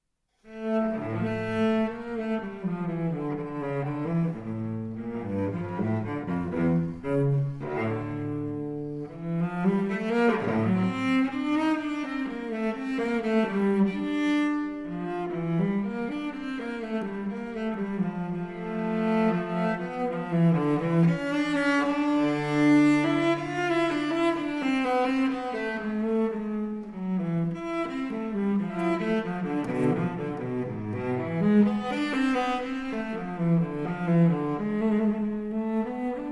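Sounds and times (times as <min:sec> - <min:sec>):
solo cello suite allemande in D minor: 0:00.3 - 0:36.2.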